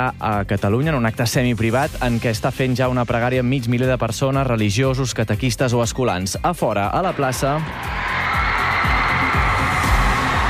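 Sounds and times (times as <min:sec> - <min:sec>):
speech: 0:00.0 - 0:08.2
crowd shouting: 0:07.6 - 0:10.4.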